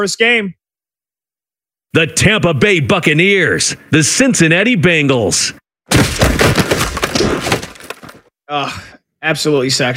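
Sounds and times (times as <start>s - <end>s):
speech: 0.0s - 0.6s, 1.9s - 6.1s, 8.5s - 9.9s
football shoulder pads crunching together: 5.9s - 8.3s.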